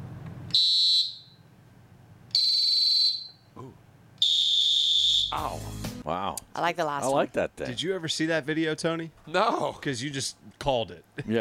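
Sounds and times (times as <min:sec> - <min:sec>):
Fox 40E whistle with three distinct tones: 0:00.5 - 0:01.4, 0:02.3 - 0:03.5, 0:04.2 - 0:05.6
speech: 0:00.6 - 0:00.8, 0:05.3 - 0:11.3.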